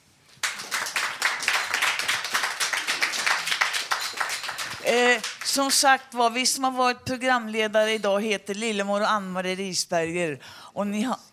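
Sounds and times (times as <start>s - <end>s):
audience applause: 0.4s - 5.7s
speech: 4.9s - 11.3s.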